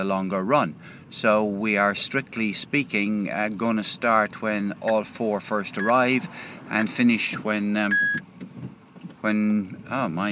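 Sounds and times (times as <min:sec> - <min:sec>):
speech: 0:00.0 - 0:08.4, 0:09.2 - 0:10.3
car Bluetooth system beeping while trying to connect to a phone: 0:05.8 - 0:06.2, 0:07.9 - 0:08.2.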